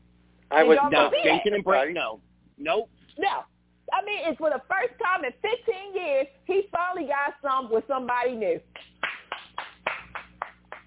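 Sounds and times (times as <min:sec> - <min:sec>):
speech: 0:00.6 - 0:08.9
one person clapping: 0:08.8 - 0:10.8.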